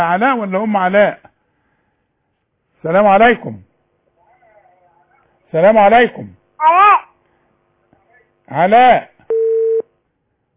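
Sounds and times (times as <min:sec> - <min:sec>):
speech: 0:00.0 - 0:01.3, 0:02.8 - 0:03.7, 0:05.5 - 0:07.0, 0:08.5 - 0:09.1
telephone line tone after a call is cut off: 0:09.3 - 0:09.8.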